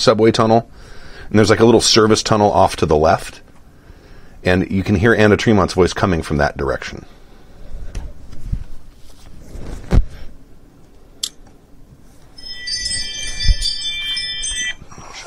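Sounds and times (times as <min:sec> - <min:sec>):
speech: 0:00.0 - 0:03.4, 0:04.4 - 0:07.2
Ring smart doorbell chime set off by passing car: 0:12.4 - 0:15.2.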